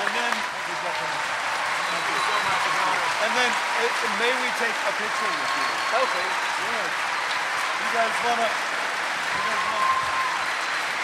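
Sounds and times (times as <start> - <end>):
live audience applause for Sir Ben Kingsley: 0.0 - 11.0
speech: 3.4 - 7.2, 7.8 - 8.8.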